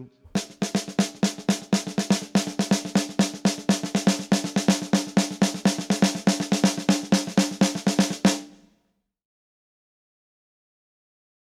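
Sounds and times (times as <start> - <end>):
samba snare drum on a drumset: 0.4 - 8.6.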